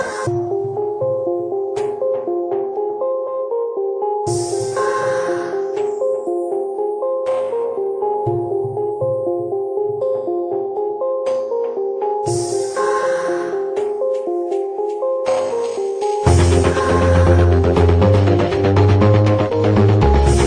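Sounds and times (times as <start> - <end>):
instrumental music: 0.2 - 20.4.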